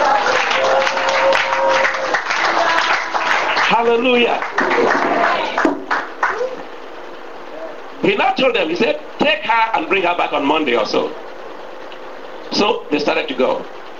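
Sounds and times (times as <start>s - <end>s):
audience clapping: 0.0s - 6.6s
speech: 3.8s - 5.4s, 8.0s - 11.2s, 12.6s - 13.8s.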